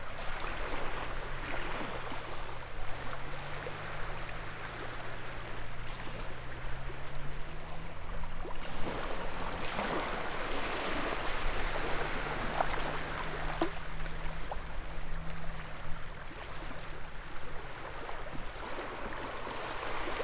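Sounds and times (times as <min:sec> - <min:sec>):
ocean waves at Carnac: 0:00.0 - 0:20.2.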